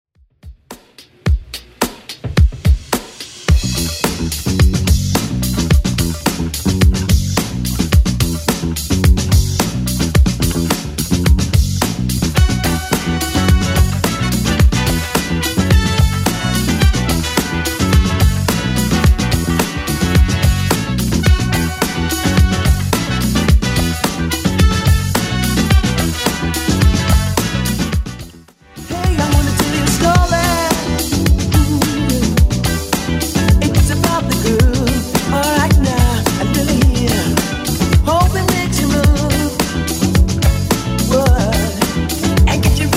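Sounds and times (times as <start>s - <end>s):
80s dance track at 108 bpm: 0.4s - 42.9s.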